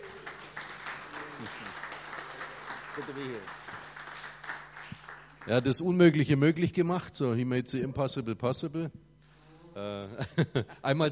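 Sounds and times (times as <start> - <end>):
soft audience applause at a church gathering: 0.0 - 6.0
speech: 3.0 - 3.6, 5.5 - 9.0, 9.8 - 11.0.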